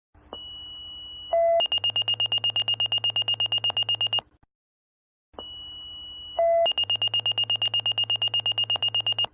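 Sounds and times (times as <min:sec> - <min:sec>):
pager alert: 0:01.6 - 0:04.2, 0:06.7 - 0:09.3.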